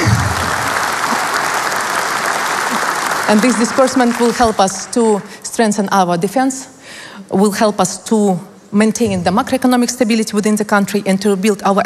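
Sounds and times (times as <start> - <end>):
applause: 0.0 - 5.0
speech: 3.3 - 11.8.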